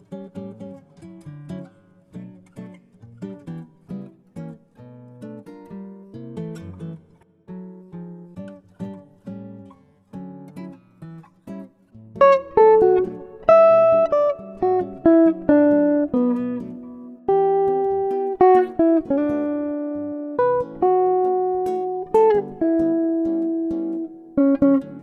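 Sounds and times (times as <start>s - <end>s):
classical jazz music: 12.2s - 25.0s.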